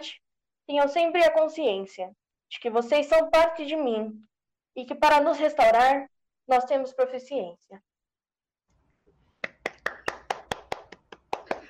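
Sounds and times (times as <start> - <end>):
speech: 0.0 - 7.9
audience hand claps: 9.4 - 11.6.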